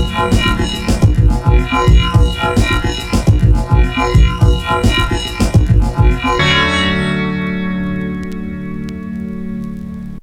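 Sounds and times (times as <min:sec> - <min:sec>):
compressed futuristic beat made on a sampler: 0:00.0 - 0:07.2.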